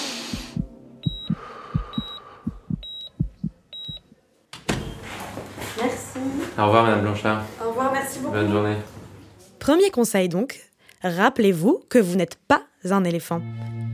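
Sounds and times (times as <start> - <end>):
heartbeat through a stethoscope: 0.3 - 4.1
faint high beeps: 1.0 - 4.1
speech: 6.6 - 9.0, 9.7 - 13.8.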